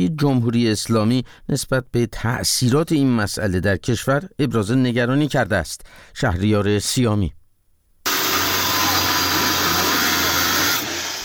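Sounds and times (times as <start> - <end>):
speech: 0.0 - 7.4
police electric saw cutting into an illegal bitcoin mining site: 8.1 - 11.2.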